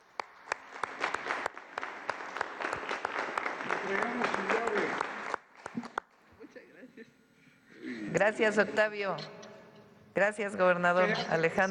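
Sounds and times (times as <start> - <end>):
audience applause: 0.0 - 6.1
speech: 3.9 - 4.6, 8.2 - 9.4, 10.2 - 11.6.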